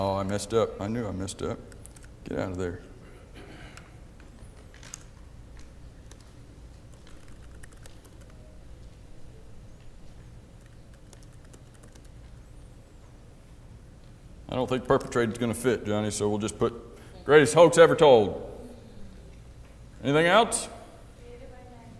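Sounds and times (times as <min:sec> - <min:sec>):
speech: 0:00.0 - 0:02.9, 0:14.5 - 0:18.5, 0:20.0 - 0:20.8
typing on a computer keyboard: 0:01.8 - 0:02.1, 0:04.6 - 0:08.6, 0:10.5 - 0:12.3.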